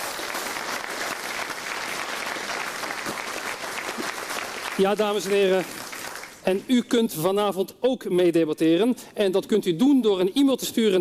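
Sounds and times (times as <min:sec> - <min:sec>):
audience applause: 0:00.0 - 0:06.4
speech: 0:04.8 - 0:05.8, 0:06.4 - 0:10.9.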